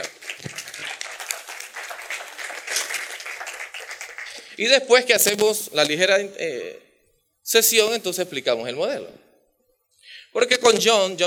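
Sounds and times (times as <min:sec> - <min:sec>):
audience applause: 0:00.0 - 0:04.6
speech: 0:04.6 - 0:06.8, 0:07.4 - 0:09.3, 0:10.3 - 0:11.2.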